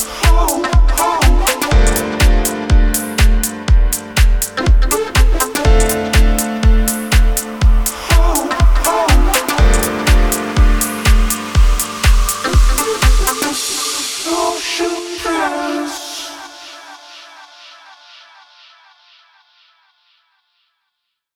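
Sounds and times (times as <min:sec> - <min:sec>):
instrumental mix: 0:00.0 - 0:13.7.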